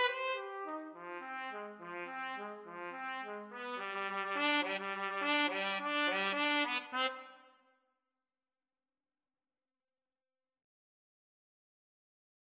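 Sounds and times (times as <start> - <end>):
trumpet duet: 0.0 - 7.6.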